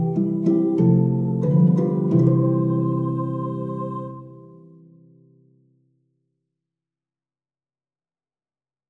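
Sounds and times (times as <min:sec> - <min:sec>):
harp: 0:00.0 - 0:05.7.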